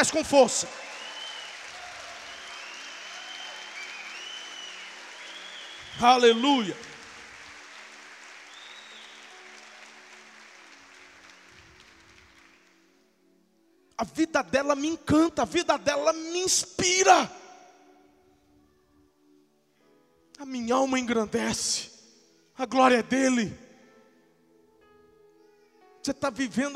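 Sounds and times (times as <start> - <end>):
speech: 0.0 - 1.0, 6.0 - 6.9, 14.0 - 17.4, 20.4 - 21.9, 22.6 - 23.6, 26.0 - 26.7
audience applause: 0.0 - 12.8.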